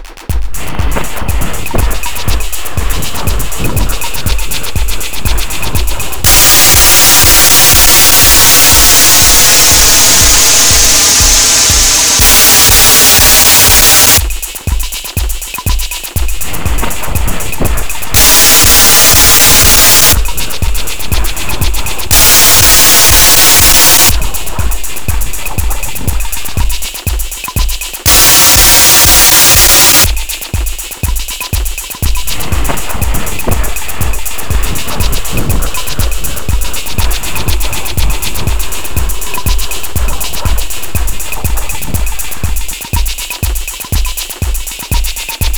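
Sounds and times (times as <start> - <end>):
white noise: 0.2 - 45.5.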